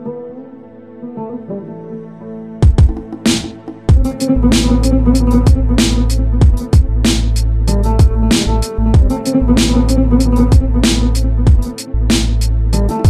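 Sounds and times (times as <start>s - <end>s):
music beat: 2.6s - 13.0s.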